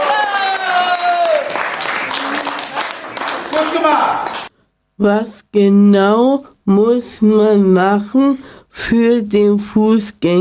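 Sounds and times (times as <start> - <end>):
group applauding: 0.0 - 4.5
speech: 5.0 - 10.3.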